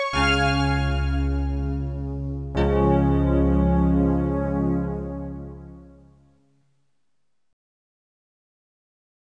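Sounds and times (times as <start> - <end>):
piano prelude in C minor: 0.1 - 6.1.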